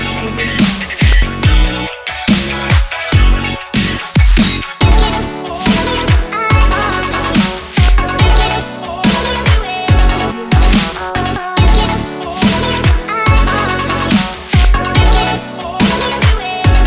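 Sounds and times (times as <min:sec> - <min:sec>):
summer future bass pop funk music: 0:00.0 - 0:16.8.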